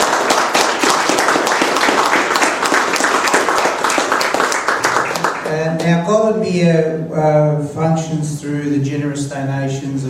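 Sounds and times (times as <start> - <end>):
audience round of applause: 0.0 - 5.5
speech: 5.8 - 10.0.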